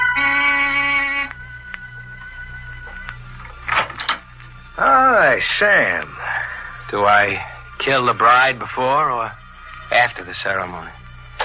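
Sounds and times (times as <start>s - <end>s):
door buzzer: 0.0s - 1.3s
low hum: 0.0s - 11.4s
speech: 4.8s - 6.2s, 6.9s - 11.0s.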